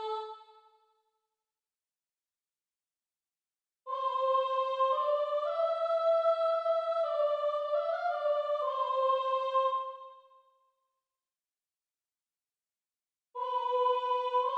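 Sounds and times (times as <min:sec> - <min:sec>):
soprano singing: 0:03.9 - 0:10.2, 0:13.4 - 0:14.5.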